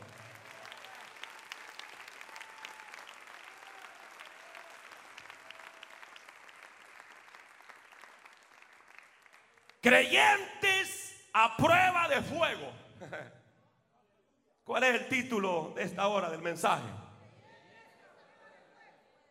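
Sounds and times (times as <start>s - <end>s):
audience applauding: 0.0s - 10.0s
speech: 9.8s - 10.8s, 11.4s - 13.4s, 14.8s - 17.0s
laughter: 13.0s - 13.4s.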